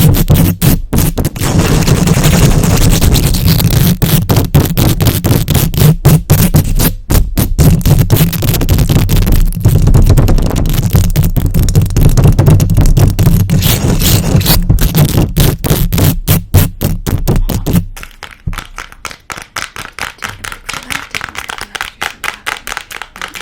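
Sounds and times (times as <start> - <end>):
rubbing: 0.0 - 18.3
fast long-nail scratching a microphone: 0.0 - 23.4
fast tapping: 4.2 - 18.7.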